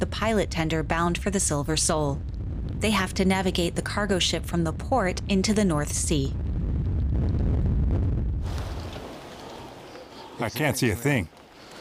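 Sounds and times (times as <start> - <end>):
storm force 8 wind: 0.0 - 10.3
speech: 0.1 - 6.4, 10.4 - 11.4.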